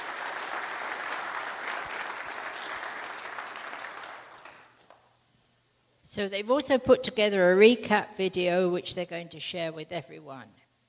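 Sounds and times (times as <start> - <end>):
crowd applauding: 0.0 - 5.0
speech: 6.1 - 10.6.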